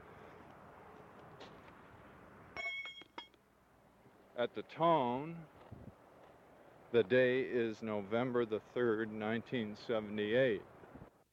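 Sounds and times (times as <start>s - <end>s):
hiss: 0.0s - 11.3s
railroad spike dropped onto a track: 2.6s - 3.4s
speech: 4.4s - 5.6s, 6.9s - 10.7s.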